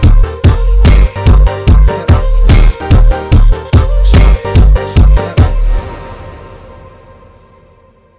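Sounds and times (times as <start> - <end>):
sped up funk music: 0.0 - 5.8.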